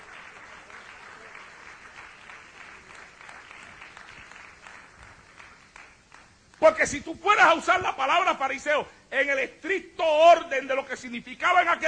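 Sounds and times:
audience applause: 0.0 - 6.4
speech: 6.6 - 11.8.

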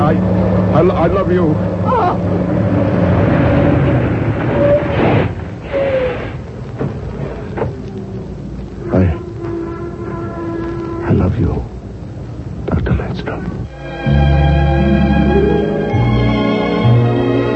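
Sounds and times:
truck engine rumbling in a radio drama crash effect: 0.0 - 17.5
speech: 0.1 - 3.1, 11.2 - 11.7
people shouting: 1.8 - 2.3
sustained horn-like tone: 8.8 - 11.8, 13.7 - 17.5.

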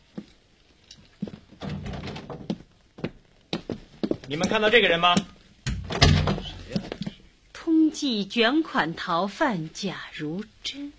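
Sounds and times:
door being opened: 1.6 - 2.6, 5.7 - 7.2
speech: 4.3 - 5.3, 8.0 - 10.9.

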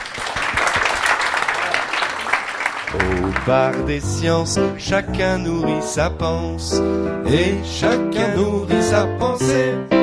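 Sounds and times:
audience applause at a public science talk: 0.0 - 4.0
speech: 3.0 - 10.0.

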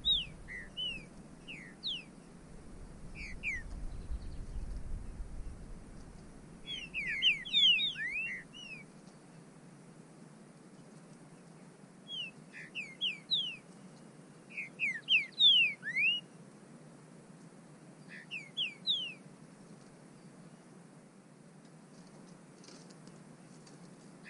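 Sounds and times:
bird whistling calls: 0.0 - 2.1, 3.1 - 4.7, 6.6 - 8.9, 12.1 - 13.6, 14.5 - 16.3, 18.1 - 19.2.

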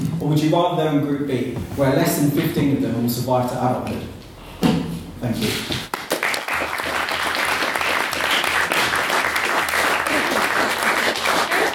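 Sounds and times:
speech: 0.2 - 4.2, 5.2 - 5.8
audience applause: 5.9 - 11.7.

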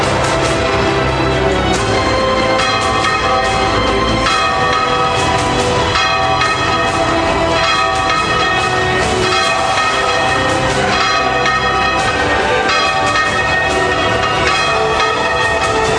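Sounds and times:
church bells ringing: 0.1 - 15.9.

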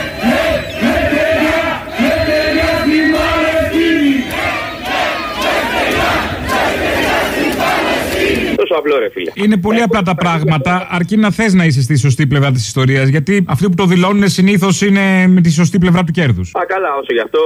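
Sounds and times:
crowd chanting a protest slogan: 0.0 - 8.6
speech: 8.8 - 17.4.

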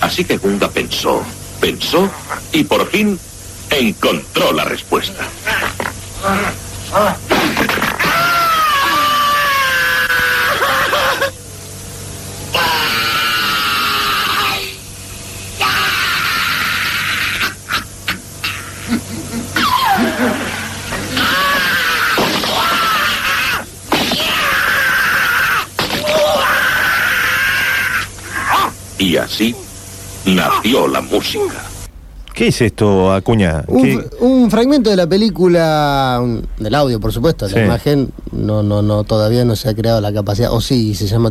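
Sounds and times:
speech: 0.1 - 7.2, 29.3 - 29.6, 30.3 - 31.7, 32.4 - 41.2
man screaming and groaning in pain: 8.0 - 11.3, 12.5 - 14.8, 15.6 - 17.7, 18.5 - 28.8.

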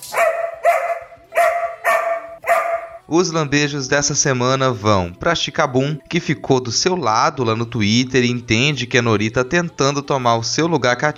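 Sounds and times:
dog barking: 0.0 - 3.0
speech: 3.1 - 11.1.

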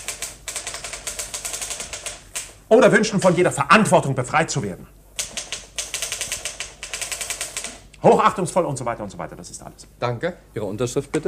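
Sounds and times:
typewriter typing a dictated letter: 0.0 - 3.5, 5.2 - 7.9
speech: 2.7 - 5.0, 8.0 - 11.2.

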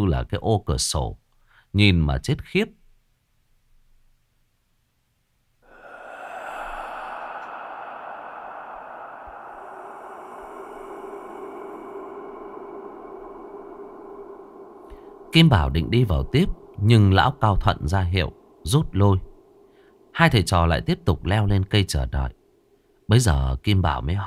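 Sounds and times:
speech: 0.1 - 2.8, 15.3 - 19.3, 20.2 - 22.4, 23.1 - 24.2
heavy creature breathing inside a cave: 5.6 - 20.2
low rumble: 5.7 - 22.6.

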